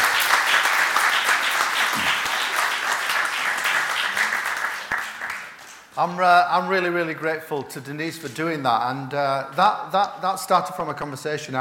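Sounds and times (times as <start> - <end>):
audience applause: 0.0 - 6.0
speech: 6.0 - 11.6.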